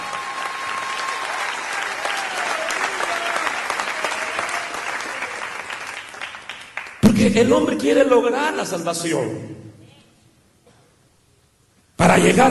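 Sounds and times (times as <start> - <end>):
audience applauding: 0.0 - 7.0
speech: 7.2 - 9.6, 12.2 - 12.4.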